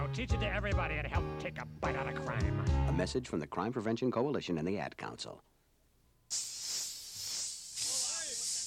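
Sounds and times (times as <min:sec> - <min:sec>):
speech: 0:00.2 - 0:05.5, 0:06.3 - 0:06.5
aerosol can of spray paint hissing: 0:06.3 - 0:08.6.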